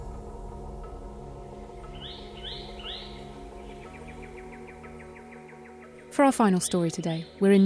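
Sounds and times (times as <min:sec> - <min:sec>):
bowerbird calls: 0:01.6 - 0:07.6
speech: 0:06.2 - 0:07.6.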